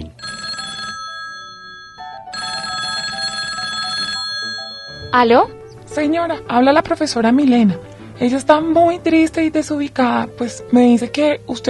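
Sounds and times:
telephone ringing: 0.0 - 5.5
speech: 5.1 - 11.6.

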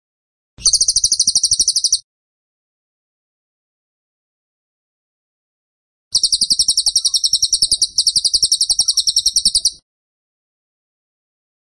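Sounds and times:
Tembakan bird song: 0.6 - 2.0, 6.2 - 9.8.

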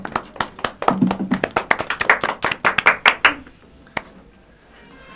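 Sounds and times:
applause: 0.0 - 4.1.

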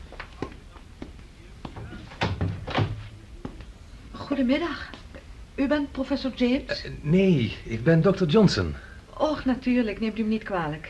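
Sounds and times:
knocking on door: 1.8 - 3.1
speech: 4.3 - 4.9, 5.6 - 10.8.

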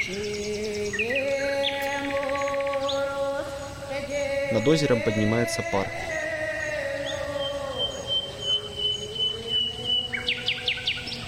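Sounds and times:
nightingale singing by a lake: 0.0 - 11.2
sharp bird chirps: 0.0 - 11.2
speech: 0.1 - 0.5, 4.5 - 6.1.

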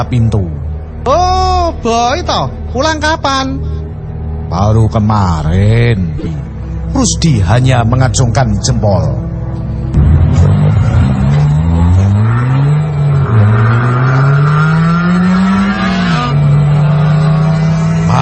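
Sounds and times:
speech: 0.0 - 3.7, 4.5 - 9.2
car engine revving: 9.6 - 18.2.

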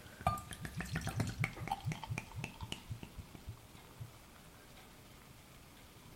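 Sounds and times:
beer fizzing in a glass: 0.2 - 3.5.

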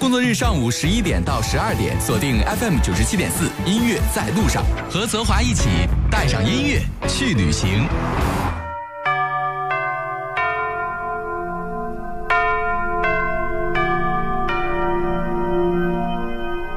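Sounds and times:
speech: 0.1 - 8.3
radio station hourly chime of resonant bell strikes: 8.6 - 16.7.

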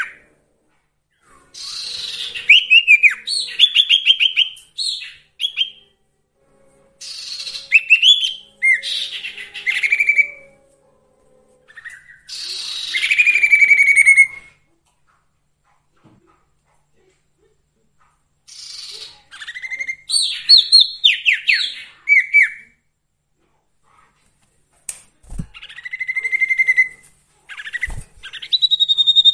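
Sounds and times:
bird song with chattering buzzy notes and trills: 1.1 - 6.0, 6.6 - 14.6, 18.5 - 22.8, 25.6 - 29.3.

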